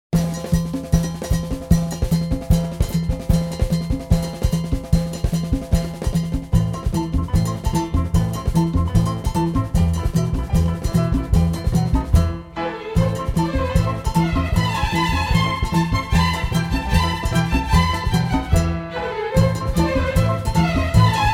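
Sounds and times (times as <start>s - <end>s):
march music: 0.2s - 21.3s.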